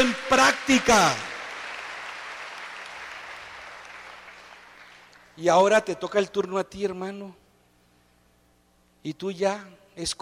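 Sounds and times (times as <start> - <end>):
speech: 0.0 - 1.3, 5.4 - 7.4, 9.0 - 10.2
audience applause: 0.0 - 5.2.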